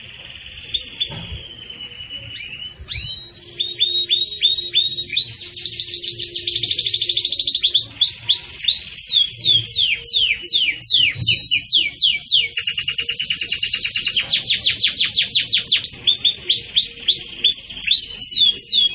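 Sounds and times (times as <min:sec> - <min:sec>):
Belgian canary song: 0:00.0 - 0:18.9.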